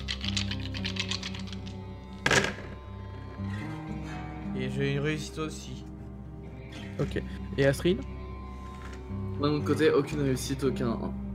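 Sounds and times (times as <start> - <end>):
six dice shaken and thrown in a tabletop game session: 0.0 - 2.7
speech: 4.6 - 5.9, 7.0 - 8.1, 9.4 - 11.2.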